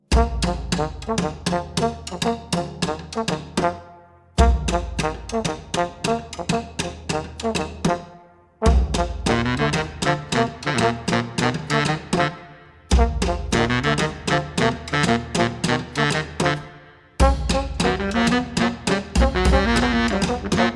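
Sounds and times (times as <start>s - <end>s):
brass band playing: 0.1s - 20.7s.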